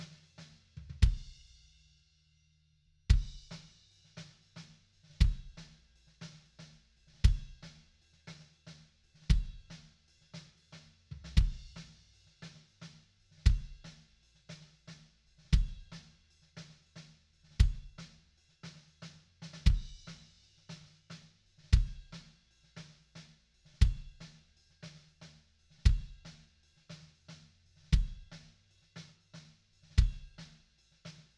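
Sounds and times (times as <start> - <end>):
kick drum: 1.0 - 1.3, 3.1 - 3.6, 5.2 - 5.6, 7.2 - 7.6, 9.3 - 9.7, 11.2 - 11.8, 13.4 - 13.8, 15.5 - 16.0, 17.6 - 18.0, 19.6 - 20.2, 21.7 - 22.2, 23.8 - 24.2, 25.8 - 26.3, 27.9 - 28.5, 30.0 - 30.5.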